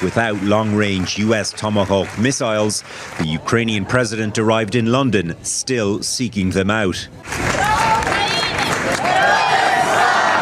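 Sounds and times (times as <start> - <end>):
speech: 0.0 - 9.1
crowd of Ukrainian refugees in London cheering and shouting: 7.3 - 10.4.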